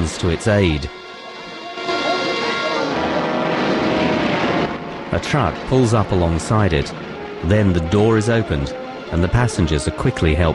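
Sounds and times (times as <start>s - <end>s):
speech: 0.1s - 1.1s, 5.1s - 10.5s
burning airplane engine: 0.4s - 10.5s
airplane belly-landing on water with a splash and skidding: 2.3s - 9.1s.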